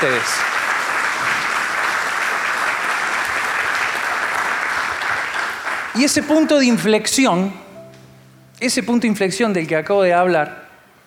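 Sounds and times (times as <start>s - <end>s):
applause: 0.0s - 6.8s
speech: 6.0s - 7.6s, 8.6s - 10.6s.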